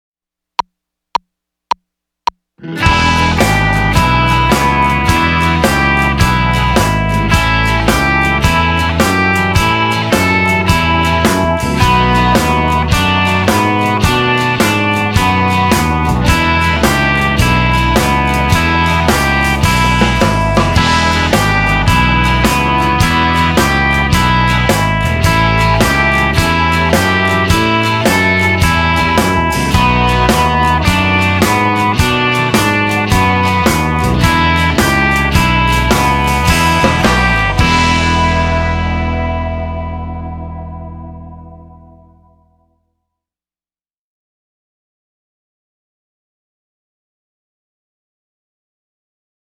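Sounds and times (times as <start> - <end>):
blues music: 2.6 - 42.7.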